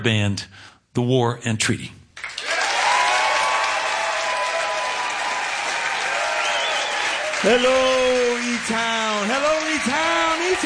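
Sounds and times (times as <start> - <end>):
speech: 0.0 - 2.0, 7.4 - 10.6
concert audience applause at a music hall: 2.2 - 10.6
cheering voices: 2.4 - 10.6.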